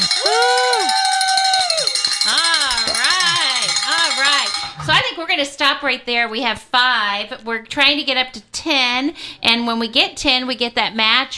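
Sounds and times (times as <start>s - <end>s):
cheering and whooping voices: 0.0s - 3.7s
hand bell ringing: 0.0s - 5.0s
speech: 5.2s - 11.3s.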